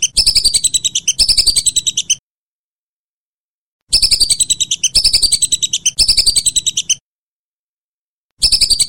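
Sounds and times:
whistling duck chirped whistles: 0:00.0 - 0:02.2, 0:03.9 - 0:07.0, 0:08.4 - 0:08.8.

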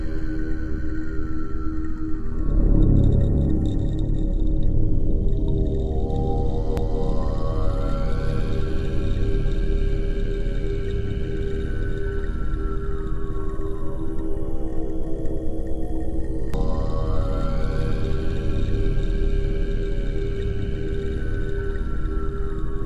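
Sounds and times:
healing music for birds: 0:00.0 - 0:22.8.

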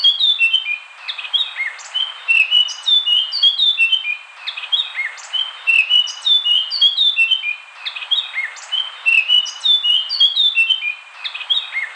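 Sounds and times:
Eurasian blackcap singing: 0:00.0 - 0:11.9.

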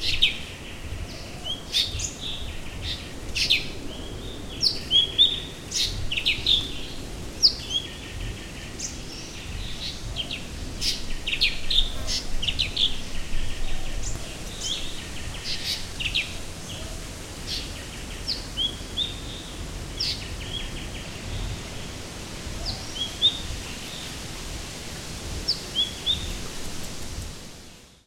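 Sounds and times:
blue-winged leafbird Chloropsis cochinchinensis singing: 0:00.0 - 0:28.0.

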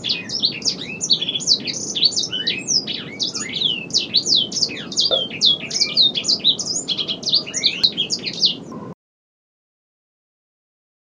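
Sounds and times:
bird singing vigorously: 0:00.0 - 0:09.0.

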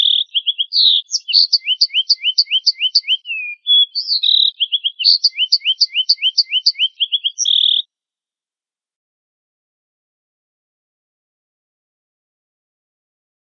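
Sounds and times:
family of canaries singing: 0:00.0 - 0:07.8.

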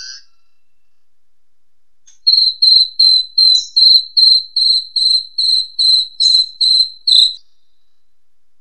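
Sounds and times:
jalak suren starling singing: 0:02.3 - 0:07.4
jangkrik crickets chirping: 0:02.3 - 0:07.4
tonggeret cicada buzzing: 0:02.3 - 0:07.4.

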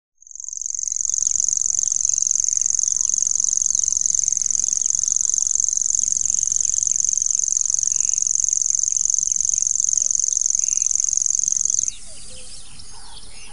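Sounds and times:
Common grasshopper warbler reeling trill: 0:00.2 - 0:13.5.

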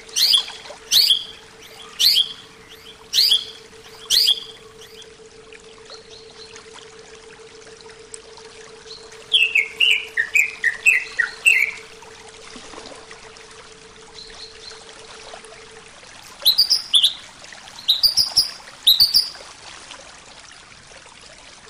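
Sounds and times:
greater green leafbird song: 0:00.0 - 0:05.1, 0:08.9 - 0:11.8, 0:16.4 - 0:17.2, 0:17.8 - 0:19.4.

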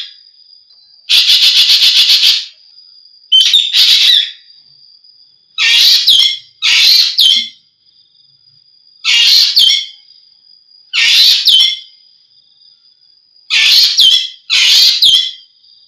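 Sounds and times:
Javan green magpie whistles and rasps: 0:01.1 - 0:02.5, 0:03.3 - 0:04.4, 0:05.6 - 0:07.5, 0:11.0 - 0:11.9, 0:13.5 - 0:15.4.

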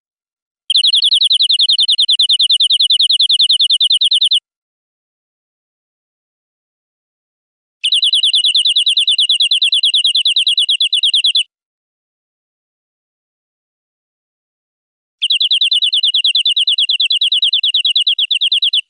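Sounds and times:
European greenfinch buzzy trill: 0:00.7 - 0:04.4, 0:07.8 - 0:11.4, 0:15.2 - 0:18.8.

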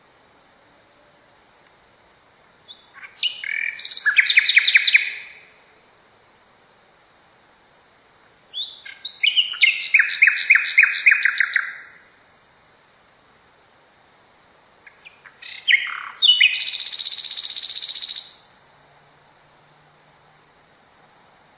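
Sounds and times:
Nightingale song with whistles and fast trill: 0:02.7 - 0:05.4, 0:08.5 - 0:11.9, 0:14.9 - 0:18.4.

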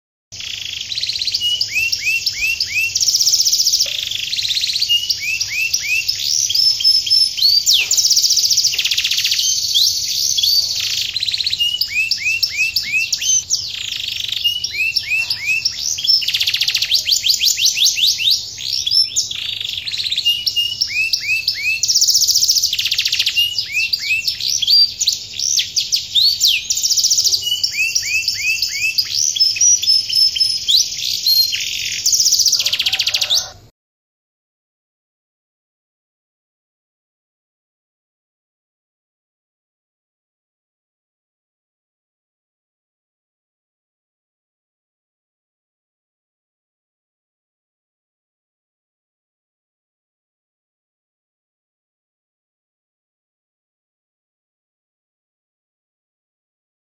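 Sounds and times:
canary singing: 0:00.4 - 0:33.7.

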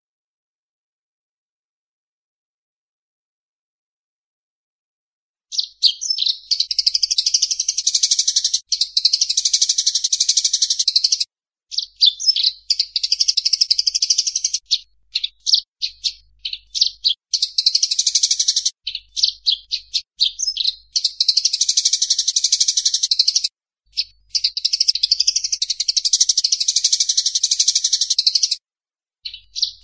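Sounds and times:
Eurasian tree sparrow chirps: 0:05.5 - 0:28.6, 0:29.2 - 0:29.8.

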